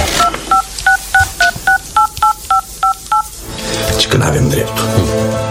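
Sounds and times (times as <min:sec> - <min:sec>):
telephone number dialed on a keypad: 0:00.2 - 0:03.3
speech: 0:04.3 - 0:05.4.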